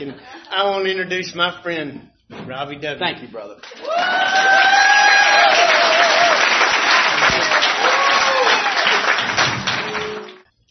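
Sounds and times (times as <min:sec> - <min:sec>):
speech: 0:00.0 - 0:05.8
audience applause: 0:03.6 - 0:10.5.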